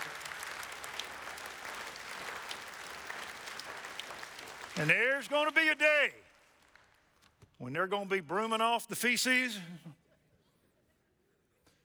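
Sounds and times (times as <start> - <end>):
audience applause: 0.0 - 7.0
speech: 4.8 - 6.3, 7.6 - 9.9.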